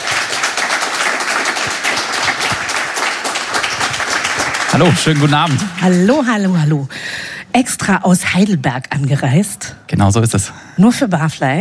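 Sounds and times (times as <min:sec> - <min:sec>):
audience applause: 0:00.0 - 0:06.5
speech: 0:04.8 - 0:11.5.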